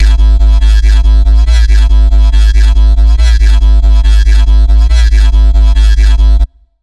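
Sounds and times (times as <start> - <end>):
dubstep bassline in C3 at 140 bpm: 0.0 - 6.5.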